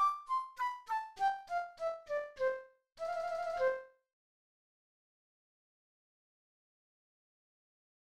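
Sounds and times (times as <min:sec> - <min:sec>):
flute playing: 0:00.0 - 0:03.9.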